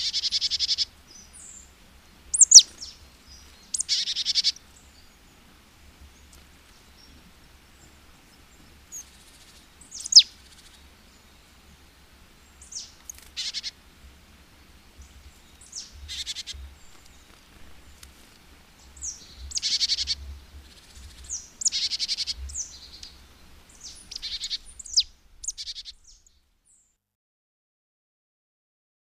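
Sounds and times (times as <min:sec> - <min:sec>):
great tit singing: 0:00.0 - 0:05.4, 0:07.8 - 0:13.8, 0:14.7 - 0:18.0, 0:18.7 - 0:26.8.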